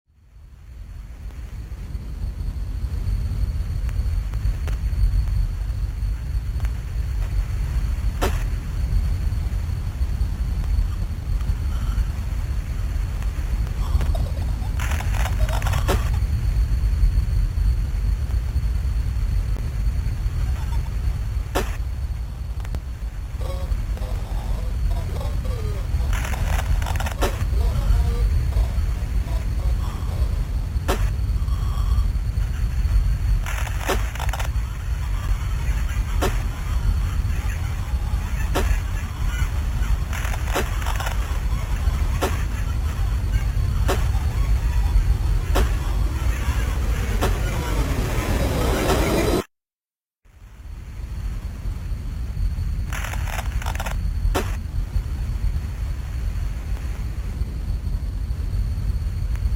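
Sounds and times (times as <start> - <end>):
noise: 0.1 - 49.5, 50.2 - 59.5.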